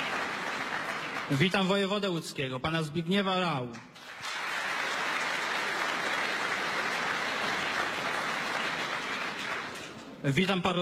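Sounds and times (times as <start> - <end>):
audience applause: 0.0 - 1.6, 4.0 - 10.2
speech: 1.3 - 3.9, 10.2 - 10.8.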